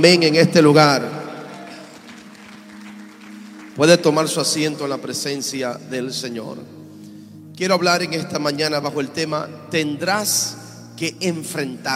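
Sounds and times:
speech: 0:00.0 - 0:01.2, 0:03.8 - 0:06.8, 0:07.6 - 0:11.9
audience applauding: 0:01.2 - 0:04.7.

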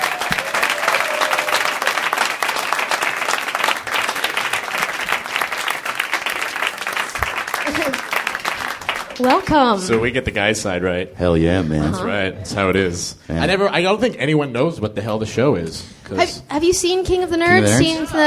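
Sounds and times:
audience applauding to welcome a guest on stage: 0:00.0 - 0:10.4
speech: 0:09.2 - 0:18.2.

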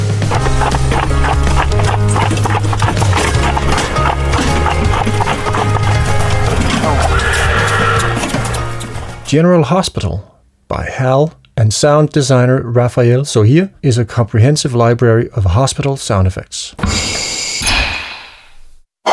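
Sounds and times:
low rumble of the rolling carriage: 0:00.0 - 0:09.3
two-horse carriage hooves clip-clopping: 0:00.0 - 0:09.3
speech: 0:09.3 - 0:17.5.

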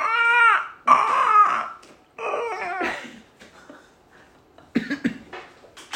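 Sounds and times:
voice imitating a penguin's screech: 0:00.0 - 0:02.8.

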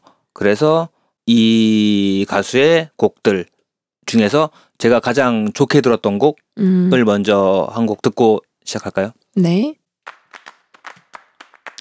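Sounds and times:
speech: 0:00.4 - 0:03.5, 0:04.1 - 0:09.8
hand clapping: 0:10.1 - 0:11.7.

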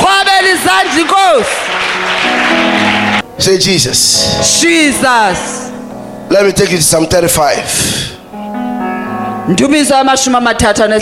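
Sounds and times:
crowd clapping: 0:00.0 - 0:03.3
speech: 0:03.4 - 0:05.7, 0:06.3 - 0:08.2, 0:09.5 - 0:11.0.

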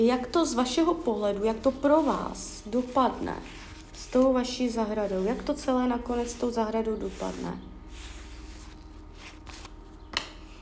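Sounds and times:
speech: 0:00.0 - 0:07.7
cards being shuffled: 0:00.2 - 0:04.4, 0:07.1 - 0:10.6.

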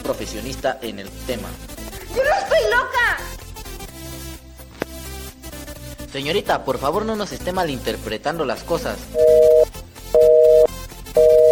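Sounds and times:
speech: 0:00.1 - 0:03.4, 0:06.1 - 0:09.5
telephone busy signal after the other party hung up: 0:09.2 - 0:11.5.

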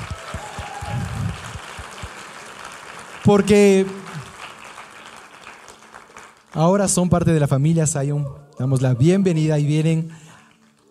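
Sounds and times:
audience applause: 0:00.0 - 0:06.9, 0:10.3 - 0:10.9
speech: 0:03.2 - 0:04.0, 0:06.6 - 0:10.2.

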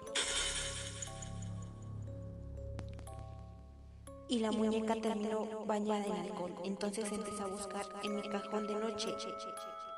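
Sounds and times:
glass wine bottle shattering: 0:00.2 - 0:01.5
sharp clink: 0:00.2 - 0:01.6
speech: 0:04.3 - 0:09.9.

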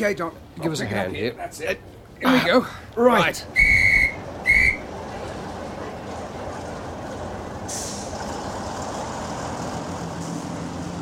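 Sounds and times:
speech: 0:00.0 - 0:03.8
train whistle blasts at departure: 0:03.6 - 0:04.8.

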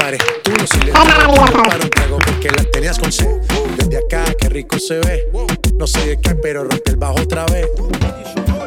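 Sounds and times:
audience clapping: 0:00.0 - 0:03.0
speech: 0:00.1 - 0:08.5.

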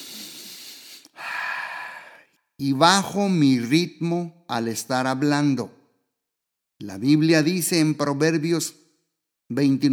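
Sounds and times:
slow deep breath by a speaker showing how to calm down: 0:00.0 - 0:02.4
speech: 0:02.6 - 0:05.8, 0:06.8 - 0:08.8, 0:09.5 - 0:09.9.

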